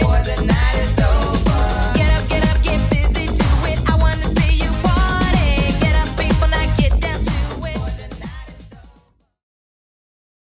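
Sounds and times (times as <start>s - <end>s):
1990s-style electronic music beat at 124 bpm: 0.0s - 9.2s.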